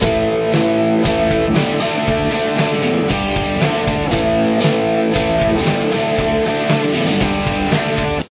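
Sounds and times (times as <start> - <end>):
chorus guitar: 0.0 - 8.2.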